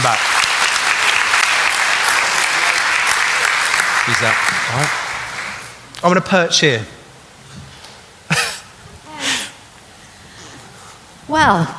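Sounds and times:
audience applause welcoming a speaker at a gathering about Jesus: 0.0s - 5.8s
speech: 0.1s - 0.3s, 4.1s - 5.0s, 6.0s - 7.0s, 11.4s - 11.7s.

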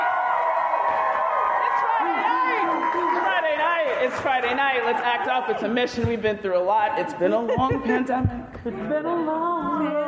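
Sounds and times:
live crowd cheering and whooping at the Star Trek Mission Chicago convention: 0.0s - 5.7s
speech: 4.1s - 10.0s.

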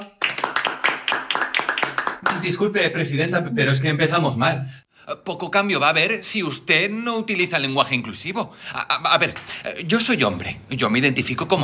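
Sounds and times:
applause: 0.0s - 2.5s
speech: 2.4s - 11.6s.

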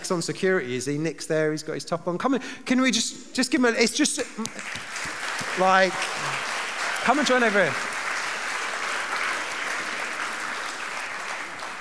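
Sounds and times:
speech: 0.1s - 5.0s, 5.6s - 6.4s, 7.0s - 7.9s
crowd clapping: 4.4s - 11.8s.

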